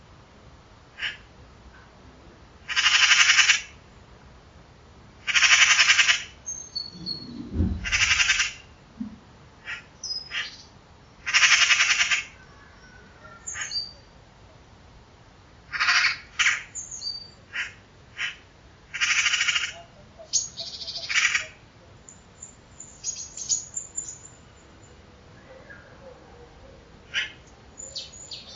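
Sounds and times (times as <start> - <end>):
harsh raspy pulsed bird calls: 1.0 - 1.3, 2.7 - 3.8, 5.2 - 8.8, 9.6 - 10.6, 11.2 - 14.0, 15.7 - 21.6, 27.0 - 28.5.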